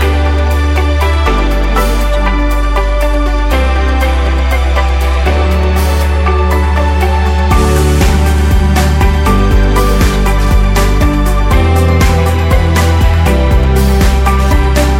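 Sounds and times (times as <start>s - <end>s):
corporate music: 0.0s - 14.9s.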